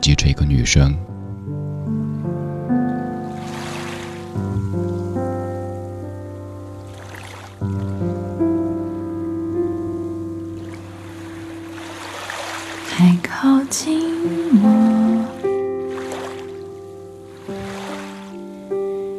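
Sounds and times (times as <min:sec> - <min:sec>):
speech: 0:00.0 - 0:01.1
piano playing: 0:00.0 - 0:19.1
ocean waves: 0:03.2 - 0:05.2, 0:06.8 - 0:07.6, 0:10.6 - 0:19.1.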